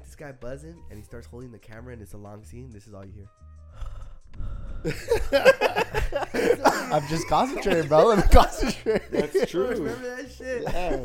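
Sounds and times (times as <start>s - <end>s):
speech: 0.2s - 3.5s, 4.8s - 11.0s
voice imitating Darth Vader-style heavy breathing: 3.8s - 5.1s, 6.2s - 6.8s
laughter: 4.9s - 11.0s.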